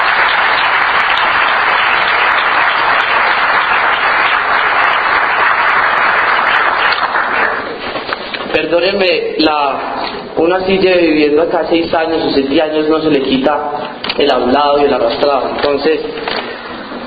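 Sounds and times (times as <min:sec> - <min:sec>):
crowd applauding: 0:00.0 - 0:07.9
speech: 0:08.6 - 0:16.4.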